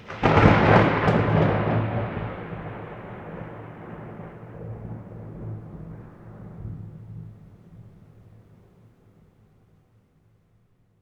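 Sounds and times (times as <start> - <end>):
thunder: 0.0 - 8.4.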